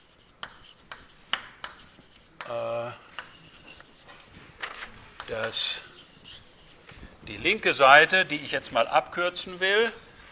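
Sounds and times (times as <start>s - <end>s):
writing out a mathematical proof by hand during a lecture: 0.0s - 4.3s, 5.2s - 7.1s
speech: 5.3s - 5.9s, 7.3s - 10.0s.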